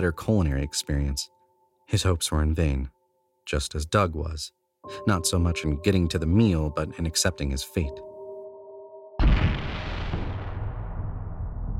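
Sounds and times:
speech: 0:00.0 - 0:08.1
loud explosion-like bang: 0:09.2 - 0:11.7.

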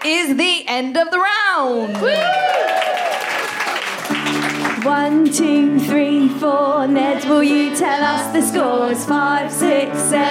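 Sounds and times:
speech: 0:00.0 - 0:02.6, 0:04.8 - 0:10.2
group applauding: 0:01.9 - 0:05.0.

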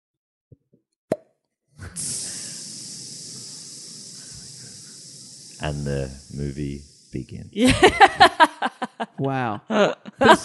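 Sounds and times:
voice imitating a snake biting a bike tire: 0:01.1 - 0:07.3
voice imitating hiss of air escaping a bike tire: 0:01.8 - 0:08.2, 0:10.2 - 0:10.4
speech: 0:05.6 - 0:10.4
laughter: 0:07.6 - 0:10.4.

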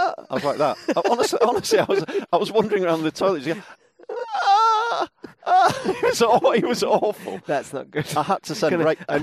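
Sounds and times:
laughter: 0:00.0 - 0:09.2
speech: 0:00.2 - 0:03.8, 0:05.5 - 0:09.2
person imitating a whimpering groan of pain: 0:04.0 - 0:06.0.

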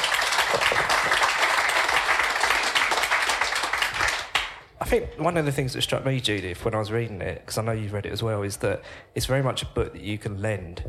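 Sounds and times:
audience applause: 0:00.0 - 0:04.7
speech: 0:04.9 - 0:10.8.

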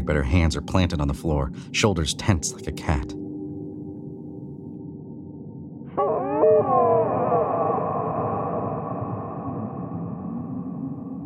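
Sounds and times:
speech: 0:00.0 - 0:03.2
eerie otherworldly moaning wail: 0:05.9 - 0:11.2.

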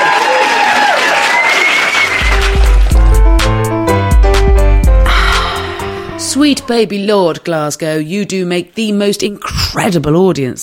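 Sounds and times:
whoops: 0:00.0 - 0:02.4
crowd clapping and cheering: 0:00.0 - 0:04.6
thumping music track with a steady beat: 0:02.0 - 0:06.7
speech: 0:06.5 - 0:10.6.

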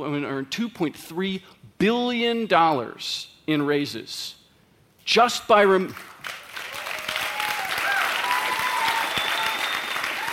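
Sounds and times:
speech: 0:00.0 - 0:04.4, 0:05.1 - 0:06.4
audience clapping: 0:05.9 - 0:10.3.

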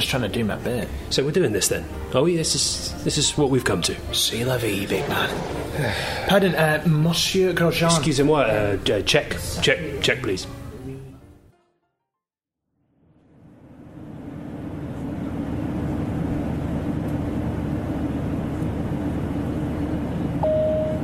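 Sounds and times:
speech: 0:00.0 - 0:10.6
airplane cabin roar in flight approaching Gatwick Airport: 0:03.9 - 0:08.7, 0:13.3 - 0:21.0
brief tone: 0:20.4 - 0:21.0.

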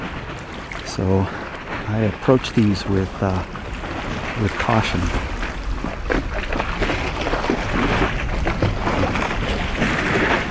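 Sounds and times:
water lapping underneath iceberg overhang: 0:00.0 - 0:10.4
speech: 0:00.9 - 0:03.6, 0:04.4 - 0:06.0.

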